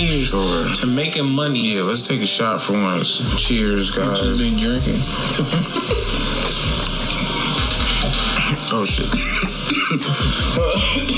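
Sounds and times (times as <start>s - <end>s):
speech: 0.0s - 6.9s, 8.7s - 11.1s
laughter: 0.0s - 11.1s
person clearing throat: 5.6s - 11.1s
person coughing after choking on water: 7.6s - 11.1s.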